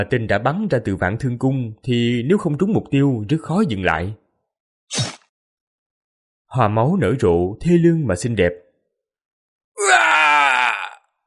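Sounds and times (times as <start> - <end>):
speech: 0.0 - 4.2, 4.9 - 5.1, 6.5 - 8.6
anguished scream sound effect: 9.8 - 11.1.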